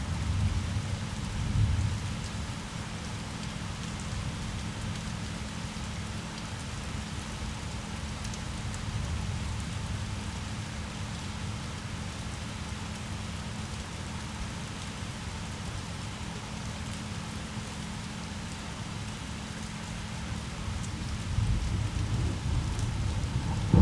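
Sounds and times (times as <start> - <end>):
rain: 0.0 - 23.7
thunder rumble: 21.0 - 23.7.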